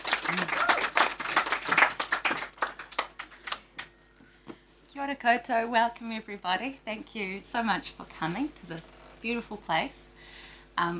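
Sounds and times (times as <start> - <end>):
audience applause at a literature event: 0.0 - 3.9
speech: 0.3 - 0.7, 5.0 - 10.1, 10.8 - 10.9.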